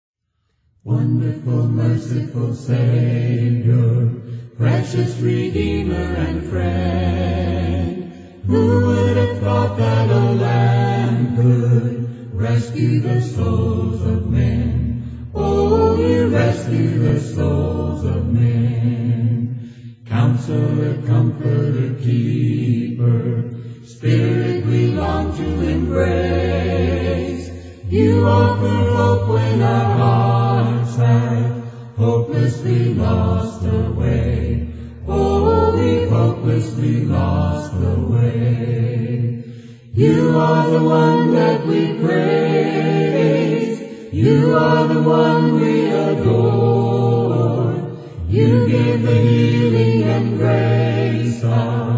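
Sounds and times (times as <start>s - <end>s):
a cappella hymn singing: 0.7s - 51.9s.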